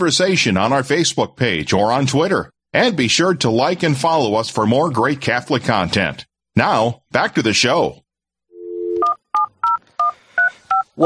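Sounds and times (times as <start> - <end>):
speech: 0.0 - 8.0
telephone dial tone: 8.5 - 10.8.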